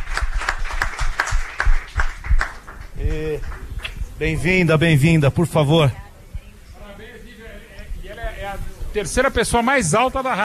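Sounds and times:
studio clapping: 0.0s - 4.0s
speech: 4.2s - 6.0s, 9.0s - 10.4s.

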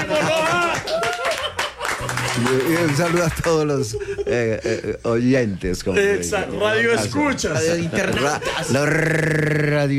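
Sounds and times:
applause, hands clapping: 0.0s - 3.8s
laughter: 0.0s - 5.2s, 7.0s - 9.7s
speech: 2.4s - 9.9s.

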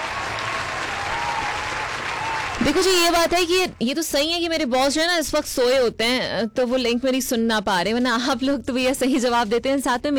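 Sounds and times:
loud applause from a crowd: 0.0s - 3.6s
speech: 2.6s - 10.1s.

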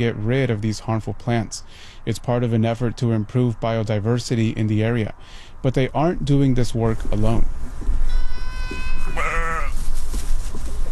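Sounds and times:
speech: 0.0s - 9.2s
sheep bleating: 8.1s - 9.8s.

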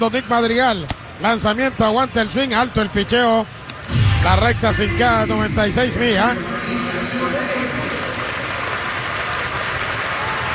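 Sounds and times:
speech: 0.0s - 6.7s
stadium crowd clapping rhythmically: 7.8s - 10.5s.

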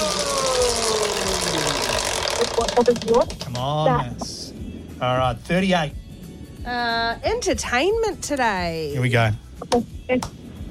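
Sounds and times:
prize wheel given a big spin on a quiz show whirring: 0.0s - 3.4s
speech: 2.8s - 4.3s, 5.0s - 6.0s, 6.6s - 10.4s.

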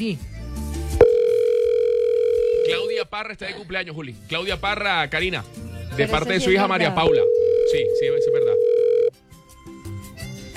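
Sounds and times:
speech: 0.0s - 0.4s, 3.0s - 8.6s
electronic telephone ringing tone: 1.0s - 3.0s, 6.9s - 10.4s.

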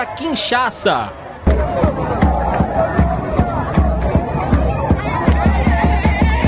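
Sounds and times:
speech: 0.0s - 1.2s
football fans cheering and shouting: 0.0s - 6.4s
heavy rhythmic thumps like drumbeats: 1.5s - 6.4s.

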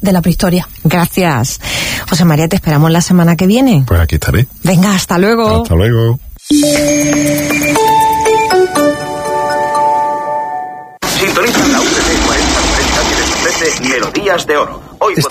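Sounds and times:
speech: 0.0s - 8.0s, 13.8s - 15.2s
bright chiming tones: 6.4s - 11.0s
broken-down car engine running: 11.0s - 14.8s.

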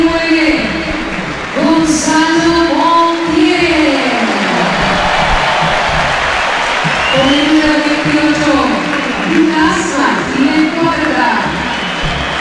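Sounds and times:
stadium crowd applause: 0.0s - 12.3s.

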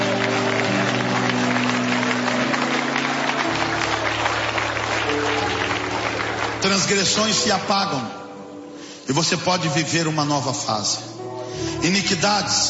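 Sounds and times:
loud applause: 0.0s - 8.0s
speech: 6.6s - 8.2s, 9.1s - 11.1s, 11.8s - 12.6s.

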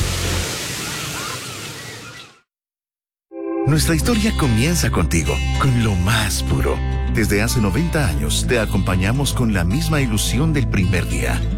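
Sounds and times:
ocean waves breaking: 0.0s - 2.4s
speech: 3.6s - 11.5s.

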